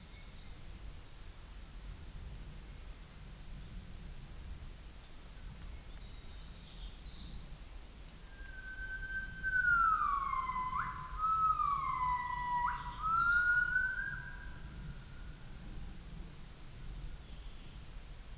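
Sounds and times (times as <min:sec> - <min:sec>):
male Nomascus gabriellae calling: 0:08.3 - 0:14.9.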